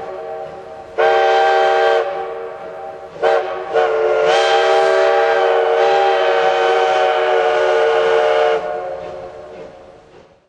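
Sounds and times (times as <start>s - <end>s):
horn whistle: 1.0s - 2.2s, 3.2s - 9.0s.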